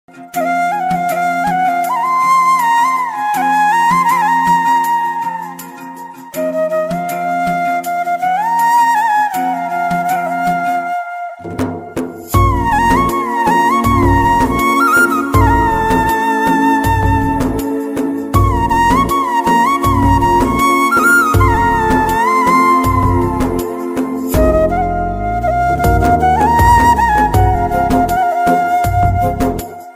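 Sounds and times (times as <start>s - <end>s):
flute ringtone: 0.3s - 29.9s.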